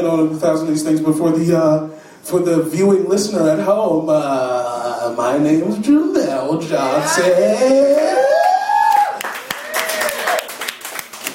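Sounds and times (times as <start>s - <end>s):
speech: 0.0s - 8.4s
audience clapping: 7.9s - 11.3s.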